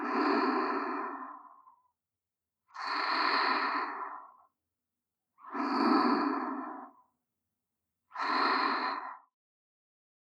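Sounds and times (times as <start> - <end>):
girlfriend breathing in sleep: 0.0 - 1.8, 2.8 - 4.4, 5.5 - 7.0, 8.2 - 9.3.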